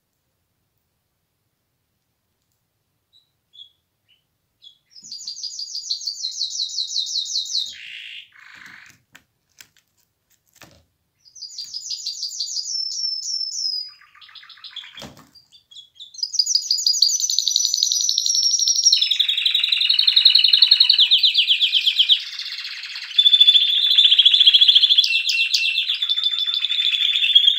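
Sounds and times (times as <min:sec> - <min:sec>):
faint clicks: 0:02.0 - 0:02.7
canary song: 0:03.0 - 0:09.0, 0:11.2 - 0:27.5.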